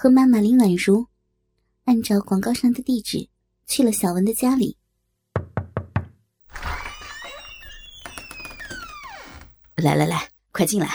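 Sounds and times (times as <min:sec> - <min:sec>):
speech: 0:00.0 - 0:01.1, 0:01.9 - 0:04.8, 0:09.8 - 0:10.9
knocking on a door: 0:05.4 - 0:06.2.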